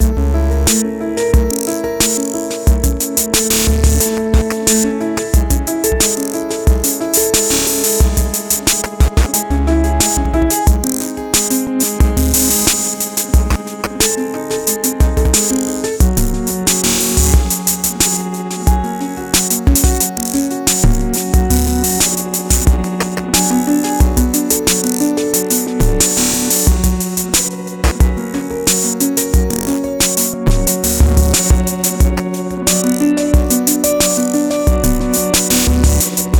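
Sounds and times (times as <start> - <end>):
piano: 0.0 - 36.3.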